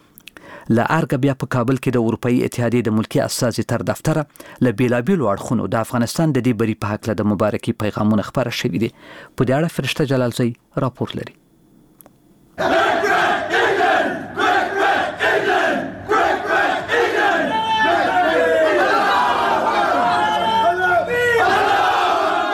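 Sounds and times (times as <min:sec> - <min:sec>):
speech: 0:00.7 - 0:11.4, 0:12.6 - 0:12.8
Afghanistan national cricket team members cheering in their room in Zimbabwe: 0:12.6 - 0:22.5.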